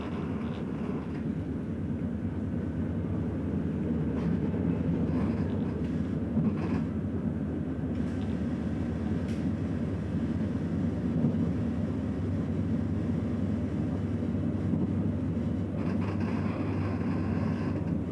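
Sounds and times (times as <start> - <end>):
S-Bahn train rumbling: 0.0 - 18.1.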